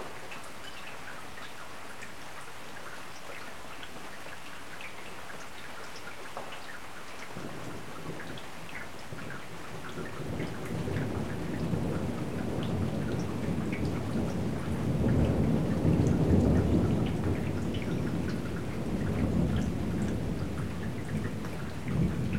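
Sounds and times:
steady falling rain: 0.0s - 22.3s
thunder rumbling: 10.0s - 22.3s.

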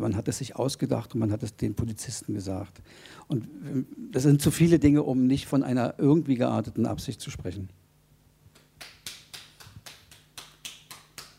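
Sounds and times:
speech: 0.0s - 7.8s
single person clapping: 8.5s - 11.3s.

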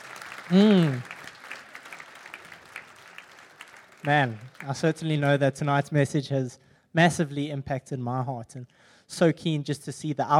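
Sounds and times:
round of applause: 0.0s - 5.4s
speech: 0.5s - 1.1s, 4.1s - 10.3s.

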